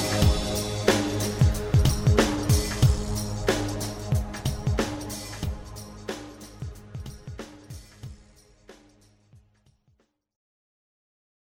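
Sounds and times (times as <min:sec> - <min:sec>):
electronic music: 0:00.0 - 0:08.5.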